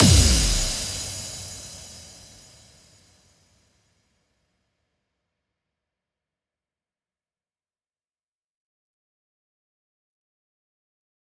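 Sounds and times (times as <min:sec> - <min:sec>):
electronic dance music: 0:00.0 - 0:02.0.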